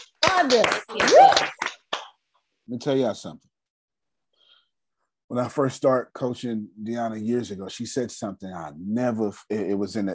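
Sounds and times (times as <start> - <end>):
speech: 0.0 - 1.6, 2.7 - 3.5, 5.3 - 10.1
audience clapping: 0.0 - 2.2.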